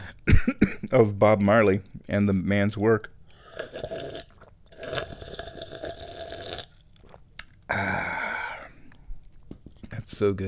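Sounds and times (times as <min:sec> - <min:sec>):
speech: 0:00.9 - 0:03.2, 0:10.2 - 0:10.4
wet gulping: 0:03.3 - 0:09.9
person slurping tea: 0:03.4 - 0:07.2.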